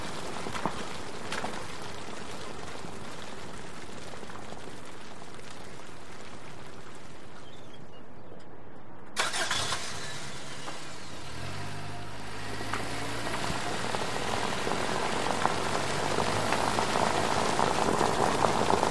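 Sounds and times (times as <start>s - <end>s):
car tires rolling through puddles in wet traffic: 0.0s - 18.9s
car starting: 9.2s - 18.9s.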